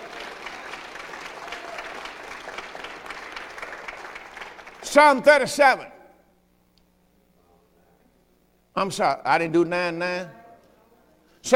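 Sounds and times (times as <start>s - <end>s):
crowd clapping hands in praise: 0.0s - 5.2s
speech: 4.9s - 5.9s, 8.8s - 10.4s.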